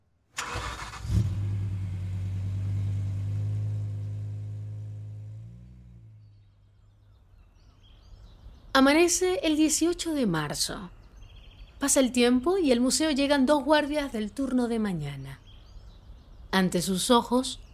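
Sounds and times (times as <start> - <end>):
getaway car engine starting: 0.4 - 6.9
speech: 8.8 - 11.0, 11.8 - 15.4, 16.5 - 17.7.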